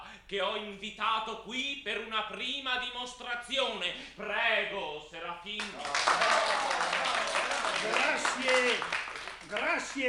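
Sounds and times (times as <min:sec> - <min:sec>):
speech: 0:00.3 - 0:10.0
applause: 0:05.6 - 0:10.0.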